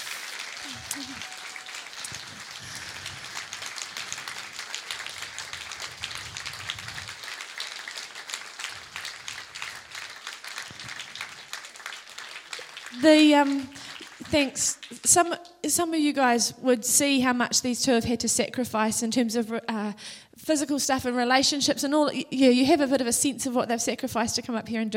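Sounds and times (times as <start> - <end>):
audience applause: 0.0 - 15.1
speech: 0.7 - 1.4, 13.0 - 24.9.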